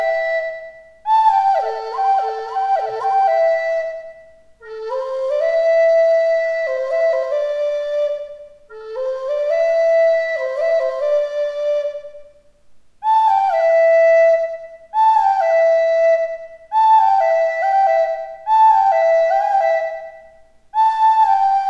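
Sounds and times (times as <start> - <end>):
native american flute pans melody: 0.0 - 12.4, 13.0 - 21.6.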